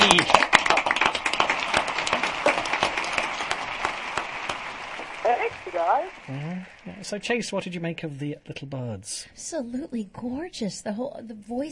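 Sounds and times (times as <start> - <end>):
audience applause: 0.0 - 7.4
speech: 6.3 - 11.7.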